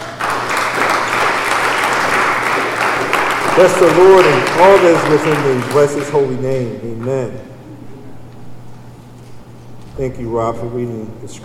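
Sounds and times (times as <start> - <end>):
audience applause: 0.0 - 6.4
speech: 3.6 - 7.6, 10.0 - 11.4.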